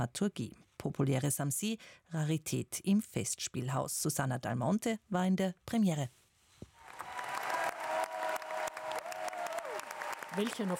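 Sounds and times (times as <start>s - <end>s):
speech: 0.0s - 6.2s, 10.4s - 10.7s
faint whoops of opera audience cheering: 6.8s - 10.7s
opera audience applauding: 6.8s - 10.7s.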